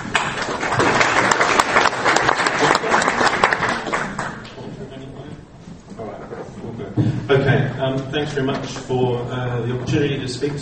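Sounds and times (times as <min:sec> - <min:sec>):
audience applause welcoming a speaker: 0:00.0 - 0:04.5
speech: 0:07.3 - 0:10.6.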